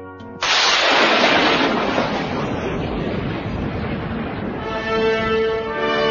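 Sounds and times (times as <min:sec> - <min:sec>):
thunder cracking and rumbling: 0:00.4 - 0:05.8.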